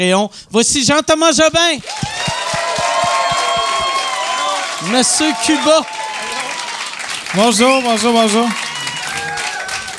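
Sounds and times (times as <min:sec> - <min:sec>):
speech: 0:00.0 - 0:02.4, 0:04.8 - 0:06.0, 0:07.3 - 0:08.7
regular beat of low thumps: 0:01.5 - 0:04.0
whoops and shouts: 0:01.8 - 0:06.9, 0:07.8 - 0:09.9
crowd applauding and cheering: 0:01.8 - 0:09.9.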